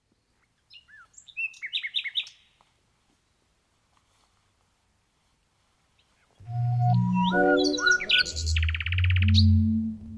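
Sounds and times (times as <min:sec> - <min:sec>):
Common Nightingale singing: 0:00.6 - 0:02.6, 0:06.4 - 0:10.1.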